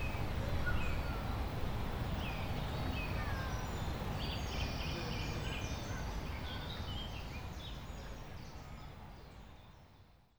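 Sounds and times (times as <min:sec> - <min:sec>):
Gnoll Park soundscape: 0:00.2 - 0:09.8.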